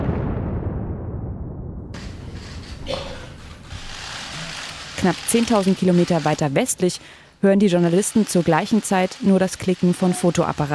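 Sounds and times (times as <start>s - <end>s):
bomb explosions in night air raid: 0.0s - 3.8s
speech: 5.0s - 10.7s.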